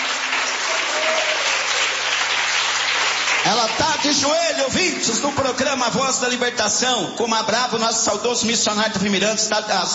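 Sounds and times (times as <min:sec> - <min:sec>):
audience clapping hands: 0:00.0 - 0:05.7
speech: 0:03.5 - 0:09.9.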